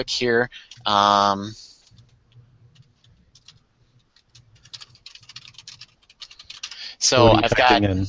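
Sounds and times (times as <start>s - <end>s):
person talking: 0.0s - 1.7s, 7.0s - 8.0s
typing an email address on a computer keyboard: 0.6s - 1.0s, 1.8s - 6.8s.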